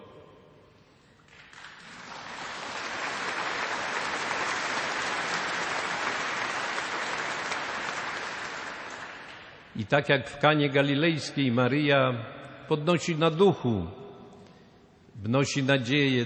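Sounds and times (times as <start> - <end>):
audience applause: 1.3 - 9.6
speech: 9.8 - 14.0, 15.2 - 16.2.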